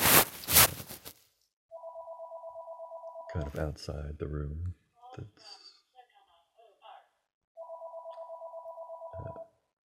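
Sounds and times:
telephone ringing with a long electronic trill: 0:01.7 - 0:03.4, 0:07.6 - 0:09.5
speech: 0:03.4 - 0:05.6.

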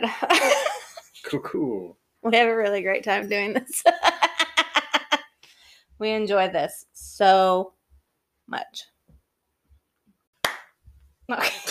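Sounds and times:
speech: 0:00.0 - 0:00.5, 0:01.3 - 0:04.1, 0:06.0 - 0:07.8, 0:08.5 - 0:08.9, 0:11.3 - 0:11.6
single sharp hand clap: 0:10.4 - 0:10.9.

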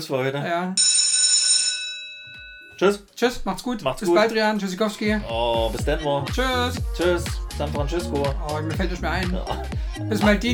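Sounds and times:
speech: 0:00.0 - 0:01.0, 0:02.8 - 0:10.5
school bell ringing: 0:00.8 - 0:03.0.

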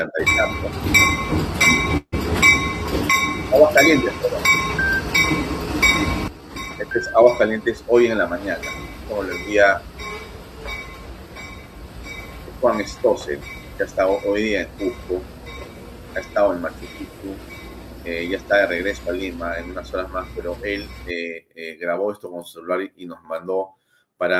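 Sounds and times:
speech: 0:00.0 - 0:02.0, 0:03.5 - 0:04.6, 0:06.9 - 0:09.9, 0:12.6 - 0:15.3, 0:16.2 - 0:24.3
train rumbling on tracks: 0:00.0 - 0:21.2.

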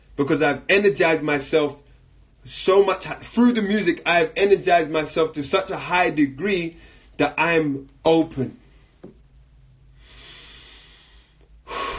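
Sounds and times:
speech: 0:00.2 - 0:01.8, 0:02.4 - 0:08.6
heavy breathing after a raised heart rate: 0:09.9 - 0:11.9.

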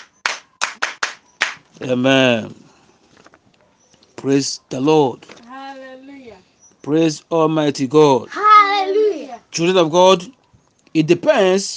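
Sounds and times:
people clapping hands: 0:00.0 - 0:01.7
speech: 0:01.8 - 0:02.6, 0:04.2 - 0:05.4, 0:06.8 - 0:08.4, 0:09.5 - 0:11.7.

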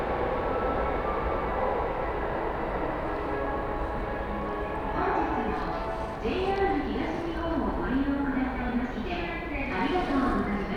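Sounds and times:
train carriage rumbling on the Utsunomiya Line: 0:00.0 - 0:10.7
passengers talking: 0:05.0 - 0:10.7.

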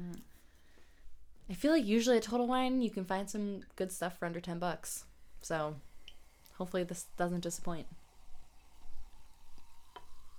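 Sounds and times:
speech: 0:01.5 - 0:05.9, 0:06.6 - 0:08.0
sparkling wine being poured, fizzing: 0:04.5 - 0:10.3.

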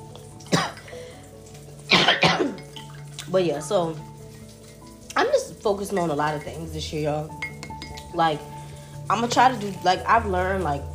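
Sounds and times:
person coughing: 0:00.5 - 0:01.0, 0:01.9 - 0:02.6
speech: 0:02.1 - 0:02.4, 0:03.3 - 0:04.1, 0:05.2 - 0:07.4, 0:08.1 - 0:08.5, 0:09.1 - 0:10.9.

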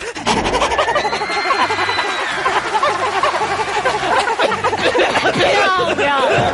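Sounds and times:
group of people imitating a dog's panting: 0:00.0 - 0:06.5
laughter: 0:00.0 - 0:06.5.

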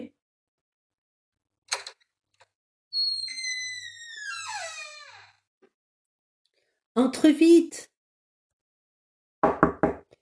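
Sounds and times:
speech: 0:07.0 - 0:07.9
knocking on a door: 0:09.4 - 0:10.1.

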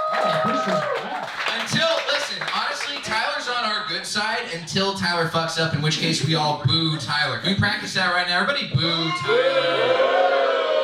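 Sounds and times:
voices cheering: 0:00.0 - 0:02.3, 0:09.0 - 0:10.8
audience clapping: 0:00.0 - 0:03.5
speech: 0:04.4 - 0:10.6.

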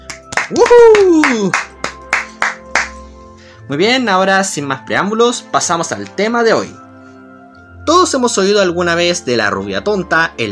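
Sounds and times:
applause: 0:00.0 - 0:03.0
speech: 0:00.5 - 0:01.7, 0:03.7 - 0:06.8, 0:07.9 - 0:10.5.

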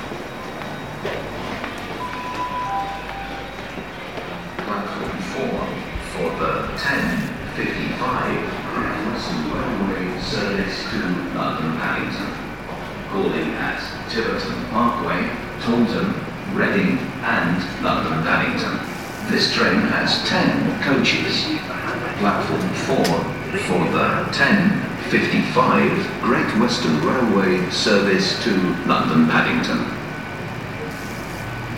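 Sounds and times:
passengers murmuring at Exeter St David's Railway Station: 0:01.0 - 0:31.6.

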